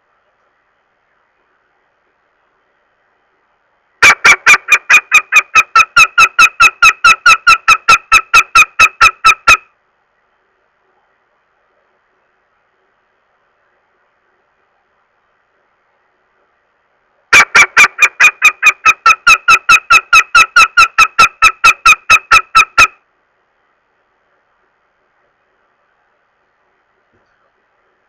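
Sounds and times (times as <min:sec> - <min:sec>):
northern goshawk uttering harsh nasal kek calls: 0:04.0 - 0:09.7, 0:17.3 - 0:23.0.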